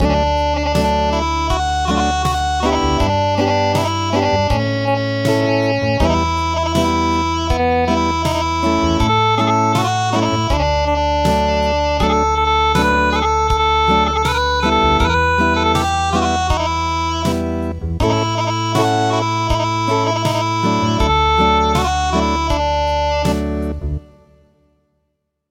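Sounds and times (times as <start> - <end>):
acoustic music: 0.0 - 24.8.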